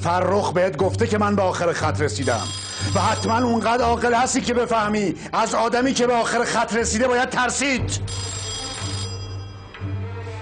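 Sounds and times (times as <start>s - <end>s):
speech: 0.0s - 8.4s
telephone ringing with trilling bell: 2.2s - 4.4s, 8.0s - 9.9s.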